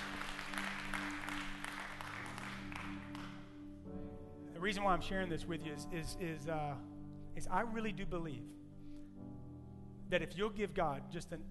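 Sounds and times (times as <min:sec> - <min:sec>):
audience clapping hands: 0:00.0 - 0:03.6
speech: 0:04.6 - 0:08.6, 0:10.1 - 0:11.5.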